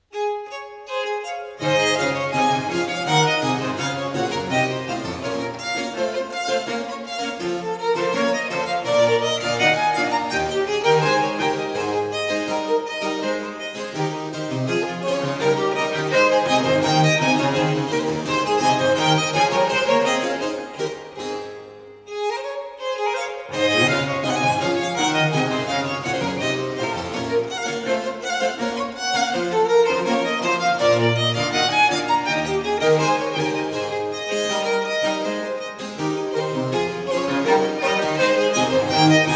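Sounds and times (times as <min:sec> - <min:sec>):
allegro classical piece: 0:00.0 - 0:39.3.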